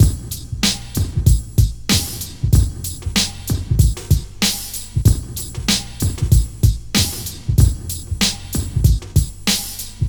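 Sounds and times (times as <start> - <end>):
hip hop beat: 0.0 - 10.0.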